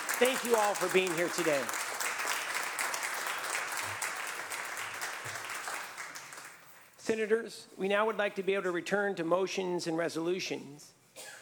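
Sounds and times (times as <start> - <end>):
applause in the California State Senate chamber: 0.0 - 7.0
speech: 0.2 - 1.9, 7.1 - 11.0.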